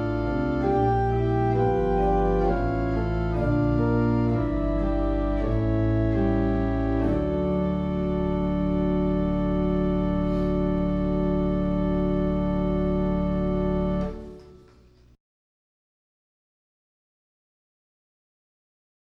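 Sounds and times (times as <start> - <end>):
organ music: 0.0 - 15.2.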